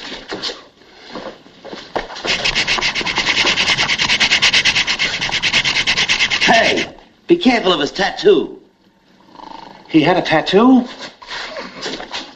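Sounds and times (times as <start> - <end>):
sandpaper rubbing on a wooden chest: 2.3 - 7.0
speech: 7.4 - 8.6, 9.9 - 11.0.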